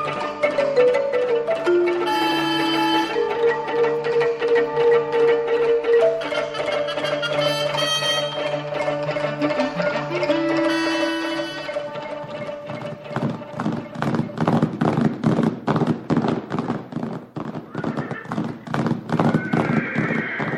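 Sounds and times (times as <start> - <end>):
mustang and another horse galloping: 0.0 - 20.5
horse neighing: 17.7 - 18.4, 19.3 - 20.5.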